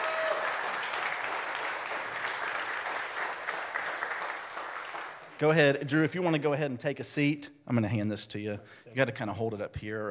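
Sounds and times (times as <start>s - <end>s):
audience applause: 0.0s - 5.4s
speech: 5.4s - 10.0s.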